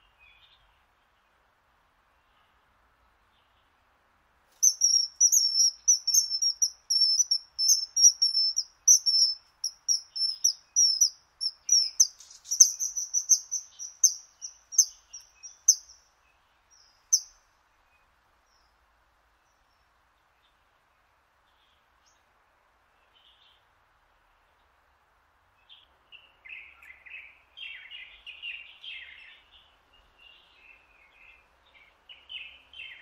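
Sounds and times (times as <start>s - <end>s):
hiss: 0.0s - 33.0s
high bird whistles: 4.6s - 15.9s.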